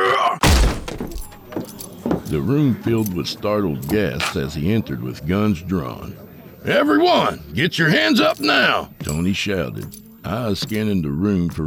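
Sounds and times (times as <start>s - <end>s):
door kicked open with a heavy kick: 0.4s - 2.4s
speech: 2.3s - 11.6s.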